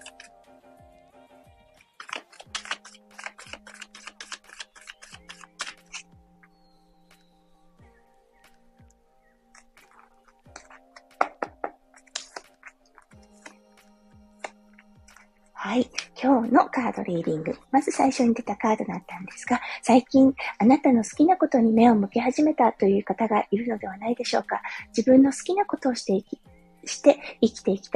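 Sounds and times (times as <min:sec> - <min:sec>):
tarot cards being shuffled for a card reading: 0:00.0 - 0:00.4, 0:01.8 - 0:06.1, 0:09.6 - 0:13.6
speech: 0:16.4 - 0:27.9.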